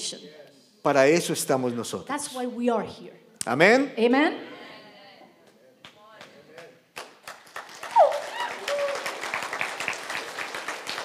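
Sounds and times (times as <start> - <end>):
speech: 0.1 - 4.6
audience applause: 7.0 - 11.0
cheers and voices: 7.9 - 9.0.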